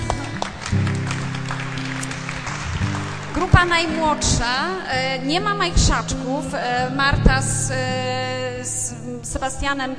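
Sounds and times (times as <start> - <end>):
crowd applauding: 0.0 - 4.8
speech: 3.4 - 9.9.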